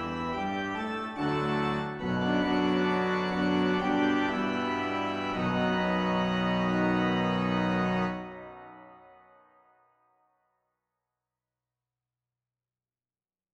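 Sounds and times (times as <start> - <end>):
organ: 0.0 - 9.2.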